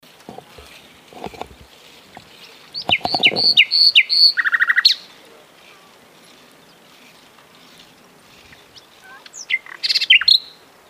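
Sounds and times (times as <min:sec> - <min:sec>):
common nightingale song: 0:02.7 - 0:05.1, 0:08.4 - 0:10.6.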